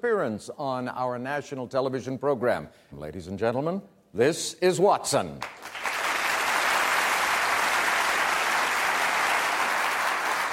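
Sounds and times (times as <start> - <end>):
speech: 0.0 - 5.8
audience applause: 5.4 - 10.5.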